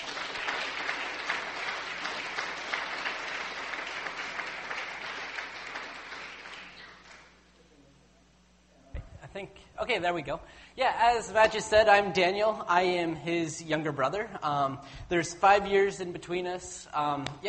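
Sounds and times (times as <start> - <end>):
church congregation applauding at a Calvary service: 0.0 - 7.4
speech: 9.4 - 17.4.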